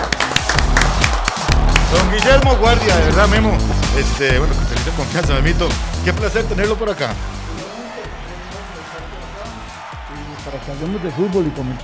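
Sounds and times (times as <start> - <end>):
hand claps: 0.0 - 2.6
speech: 1.9 - 7.3, 10.4 - 11.8.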